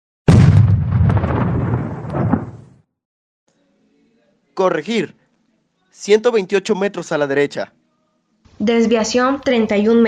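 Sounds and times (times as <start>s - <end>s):
single artillery gun firing in the mountains: 0.3s - 2.8s
speech: 4.6s - 5.2s, 6.0s - 7.8s, 8.6s - 10.0s.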